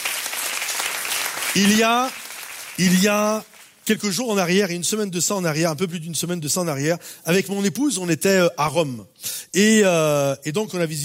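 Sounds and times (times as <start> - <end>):
congregation applause: 0.0 - 4.2
speech: 1.5 - 2.2, 2.8 - 11.0.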